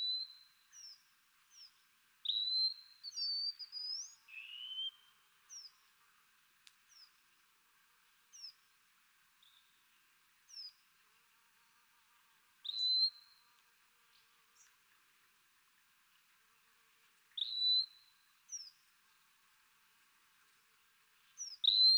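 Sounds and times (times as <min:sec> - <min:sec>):
wallcreeper whistling: 0:02.3 - 0:04.9, 0:21.6 - 0:21.9.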